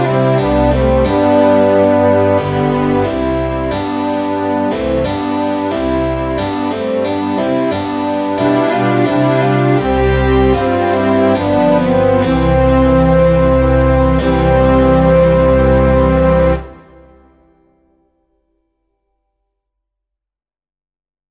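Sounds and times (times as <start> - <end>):
trumpet tune: 0.0 - 7.7, 8.3 - 17.5.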